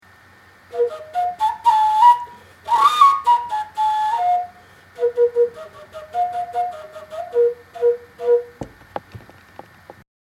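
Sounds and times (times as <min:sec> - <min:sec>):
koncovka jam: 0:00.7 - 0:08.6.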